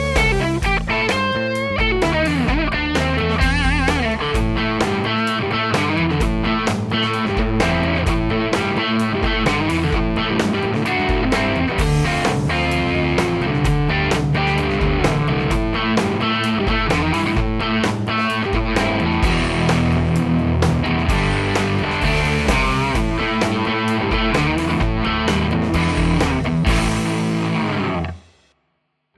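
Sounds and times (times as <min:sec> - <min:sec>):
high-gain electric guitar on bridge and neck pickups: 0:00.0 - 0:28.5.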